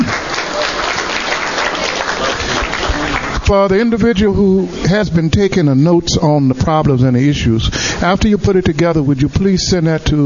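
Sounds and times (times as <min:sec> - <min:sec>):
audience applause: 0:00.0 - 0:03.5
speech: 0:03.5 - 0:10.2.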